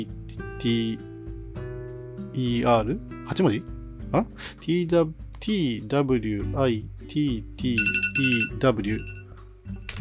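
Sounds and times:
speech: 0.0s - 1.1s, 2.4s - 9.2s
phone alarm going off: 7.8s - 9.9s.

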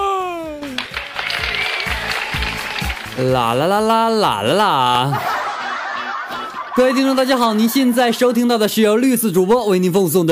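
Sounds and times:
applause: 0.6s - 3.8s
speech: 3.2s - 5.3s, 6.8s - 10.3s
laughter: 4.4s - 9.6s.

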